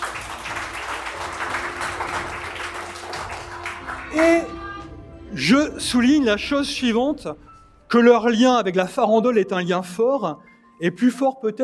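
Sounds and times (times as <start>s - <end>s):
students applauding: 0.0s - 4.8s
speech: 4.2s - 4.6s, 5.4s - 11.6s.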